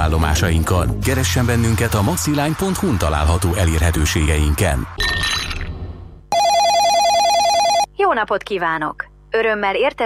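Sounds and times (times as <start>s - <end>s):
speech: 0.1s - 5.6s, 8.1s - 10.0s
telephone ringing with a warbling electronic tone: 6.3s - 7.9s.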